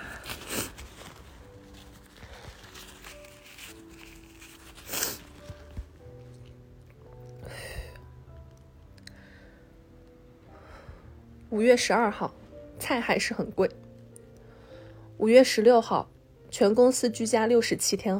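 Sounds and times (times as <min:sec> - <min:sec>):
person blowing nose: 0:00.0 - 0:05.8
speech: 0:11.6 - 0:13.8, 0:15.2 - 0:18.1.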